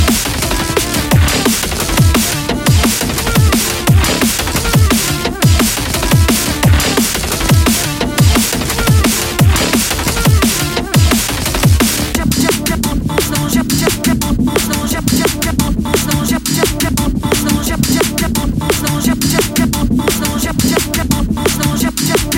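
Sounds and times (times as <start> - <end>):
drum and bass remix ringtone: 0.0 - 22.3.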